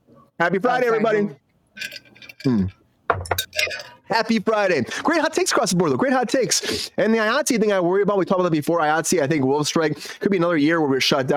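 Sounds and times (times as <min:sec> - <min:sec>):
speech: 0:00.4 - 0:02.8, 0:04.1 - 0:11.3
glasses clinking in a toast: 0:01.8 - 0:04.1.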